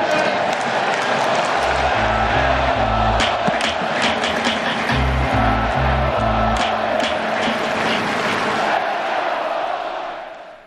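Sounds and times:
huge stadium crowd roaring and chanting: 0.0s - 10.6s
loud rhythmic pounding beats: 1.5s - 8.6s.

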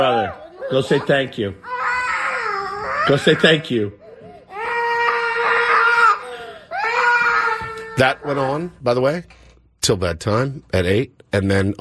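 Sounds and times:
speech: 0.0s - 1.7s, 3.1s - 4.0s, 8.0s - 11.7s
young child crying and screaming: 1.6s - 3.7s, 4.5s - 8.6s.

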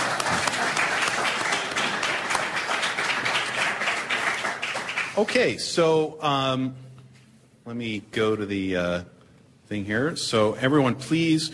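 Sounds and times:
audience applause: 0.0s - 5.4s
speech: 5.2s - 6.8s, 7.7s - 11.5s.

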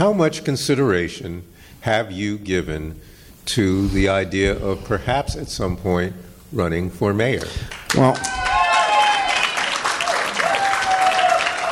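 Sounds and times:
speech: 0.0s - 8.5s
audience applause during a live political interview: 7.7s - 11.6s.

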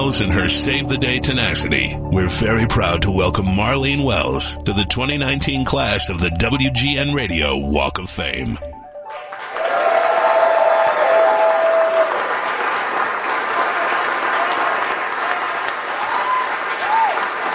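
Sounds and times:
speech: 0.0s - 8.8s
standing ovation applause at a WGN Radio Walk of Fame induction: 9.1s - 17.5s.

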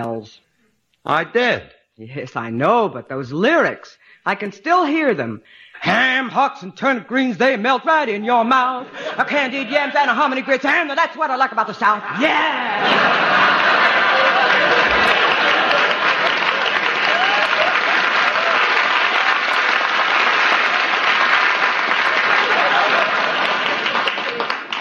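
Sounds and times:
speech: 0.0s - 13.4s
laughter: 8.8s - 10.9s, 11.9s - 19.8s, 21.8s - 24.7s
audience applause: 12.7s - 24.7s.

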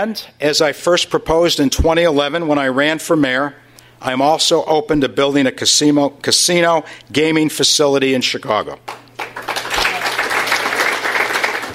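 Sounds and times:
speech: 0.0s - 9.0s
audience applause: 8.9s - 11.7s.

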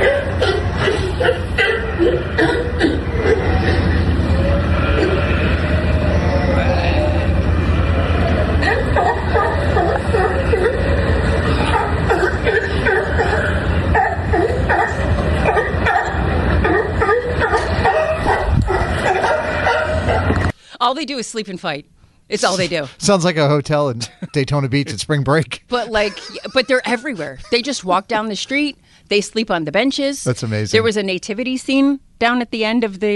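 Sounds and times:
sea lions barking outside a hotel: 0.0s - 20.5s
laughter: 8.2s - 13.6s, 24.0s - 27.8s
speech: 21.0s - 33.1s.

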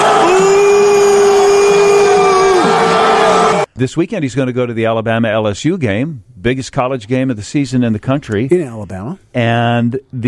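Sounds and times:
fight crowd cheering and booing: 0.0s - 3.7s
speech: 3.8s - 10.2s.

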